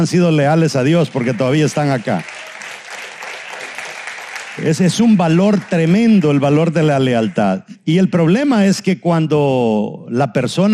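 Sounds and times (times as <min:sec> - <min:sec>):
speech: 0:00.0 - 0:02.4, 0:04.6 - 0:10.7
crowd clapping: 0:00.0 - 0:07.6.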